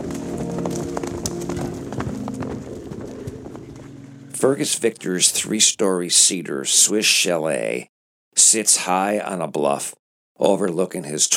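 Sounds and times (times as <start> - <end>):
low droning tone: 0.0 - 5.0
horses galloping up a hill: 0.0 - 5.5
speech: 4.4 - 11.3.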